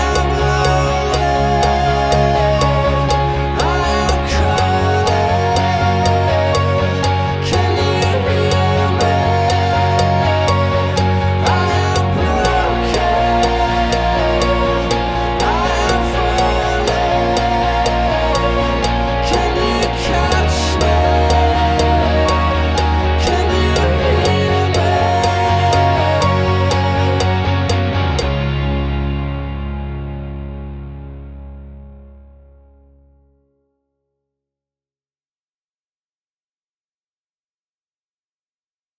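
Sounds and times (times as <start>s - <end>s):
backing track: 0.0s - 31.8s
click track: 0.1s - 28.3s.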